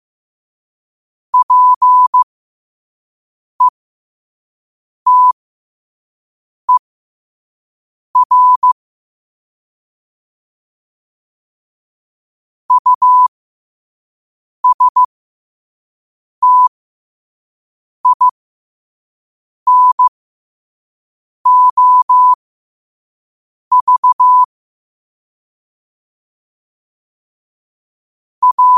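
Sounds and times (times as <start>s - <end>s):
morse code at 5 wpm: 1.4s - 2.3s, 5.1s - 5.4s, 8.2s - 8.8s, 12.7s - 13.3s, 14.6s - 15.1s, 16.4s - 16.7s, 18.0s - 18.3s, 19.7s - 20.1s, 21.5s - 22.4s, 23.7s - 24.5s, 28.4s - 28.7s.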